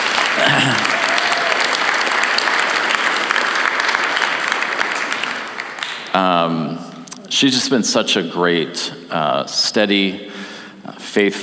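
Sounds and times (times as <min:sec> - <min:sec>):
audience applause at a church gathering: 0:00.0 - 0:06.5
speech: 0:06.2 - 0:10.4, 0:11.0 - 0:11.4.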